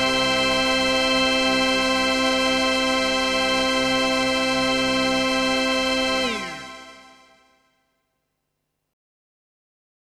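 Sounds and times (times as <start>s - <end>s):
Kurzweil PC361 polysynth: 0.0s - 7.4s.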